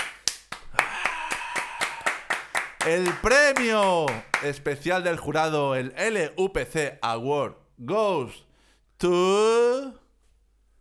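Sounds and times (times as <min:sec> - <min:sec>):
crowd applauding: 0:00.0 - 0:04.6
speech: 0:02.8 - 0:10.0.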